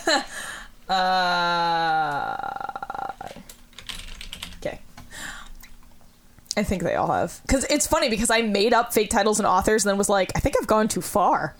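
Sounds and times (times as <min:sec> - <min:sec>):
speech: 0:00.1 - 0:01.9, 0:06.6 - 0:11.5
typing on a computer keyboard: 0:03.3 - 0:04.8.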